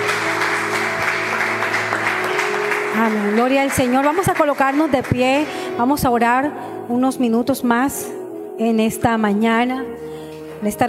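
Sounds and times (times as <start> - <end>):
audience applauding: 0.0 - 5.7
speech: 3.0 - 10.8.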